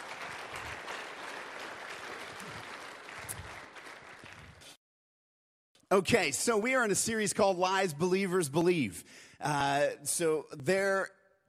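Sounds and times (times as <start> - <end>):
audience applause: 0.0 - 4.7
speech: 5.9 - 11.2.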